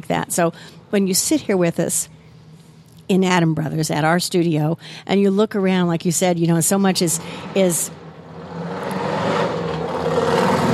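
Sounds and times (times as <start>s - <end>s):
speech: 0.0s - 2.2s, 3.1s - 8.0s
motorbike driving by: 8.3s - 10.7s.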